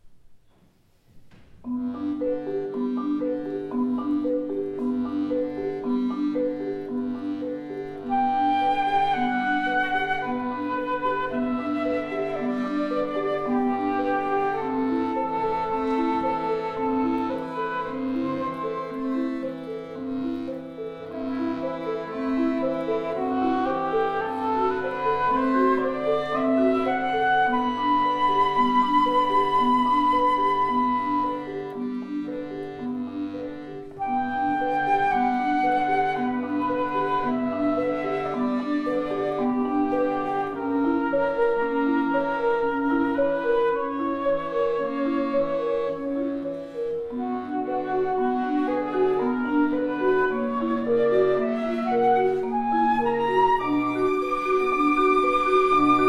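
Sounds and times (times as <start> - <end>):
marimba: 1.6 - 56.0
flutes: 8.0 - 20.5, 21.2 - 32.0, 34.0 - 56.0.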